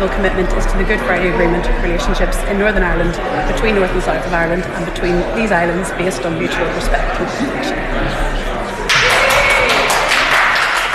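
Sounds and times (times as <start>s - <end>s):
speech: 0.0s - 8.5s
applause from SNP benches: 8.9s - 10.9s.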